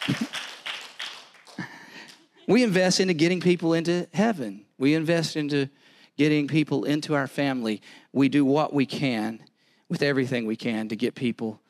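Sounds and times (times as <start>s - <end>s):
speech: 0.0s - 0.2s, 2.5s - 11.6s
audience clapping in a steady quick rhythm: 0.0s - 2.4s.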